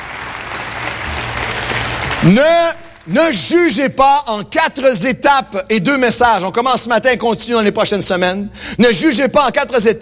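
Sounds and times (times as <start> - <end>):
audience applause: 0.0 - 3.1
speech: 2.2 - 9.9.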